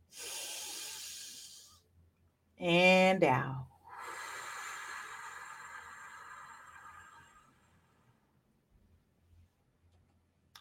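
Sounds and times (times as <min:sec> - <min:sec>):
person breathing in deeply during a guided breathing exercise: 0:00.1 - 0:01.8, 0:03.9 - 0:08.1
speech: 0:02.6 - 0:03.6.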